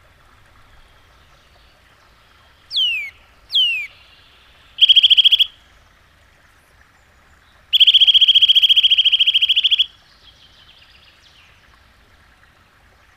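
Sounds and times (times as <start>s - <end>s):
Eurasian nuthatch calling with loud downslurred whistled notes: 2.7s - 4.0s, 4.8s - 5.5s, 7.8s - 9.9s.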